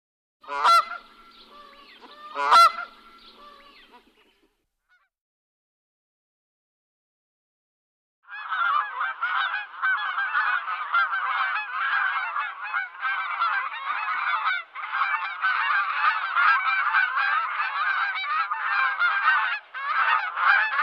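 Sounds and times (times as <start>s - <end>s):
dense chorus of bird nasal honks: 0.4s - 4.3s, 8.3s - 20.8s.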